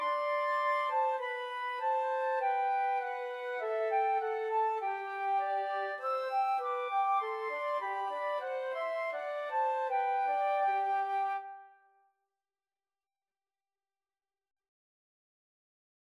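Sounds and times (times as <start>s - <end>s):
flute trio playing: 0.0s - 11.8s.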